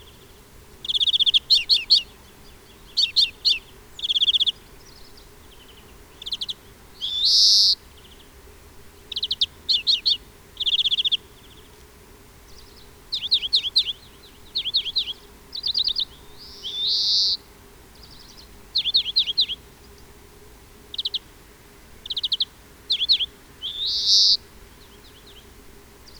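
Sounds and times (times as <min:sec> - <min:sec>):
European greenfinch calls: 0:00.8 - 0:04.6, 0:06.1 - 0:07.8, 0:09.1 - 0:11.2, 0:13.1 - 0:17.5, 0:18.1 - 0:19.6, 0:20.9 - 0:21.3, 0:22.0 - 0:24.4.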